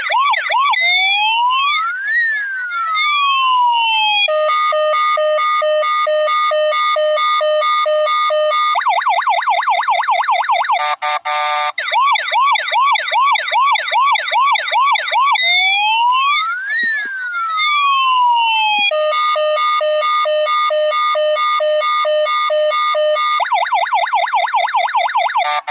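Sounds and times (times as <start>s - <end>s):
small police car: 0.0s - 25.6s.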